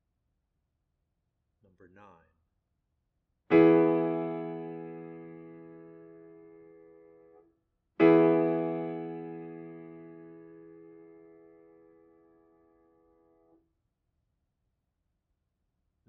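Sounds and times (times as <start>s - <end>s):
chords: 3.5s - 7.1s, 8.0s - 12.2s.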